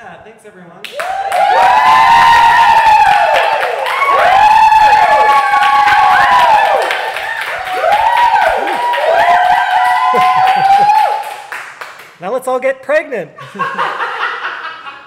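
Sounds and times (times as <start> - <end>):
speech: 0.2 - 2.3, 12.4 - 14.0
audience cheering and whooping as a show ends: 0.9 - 11.6.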